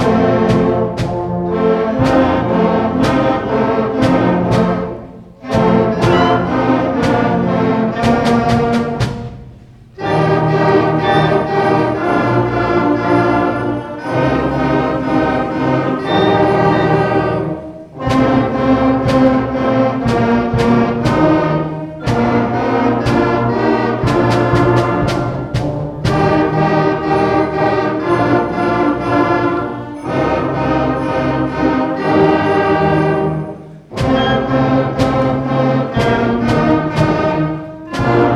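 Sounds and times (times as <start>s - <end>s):
holiday concert music: 0.0s - 38.3s.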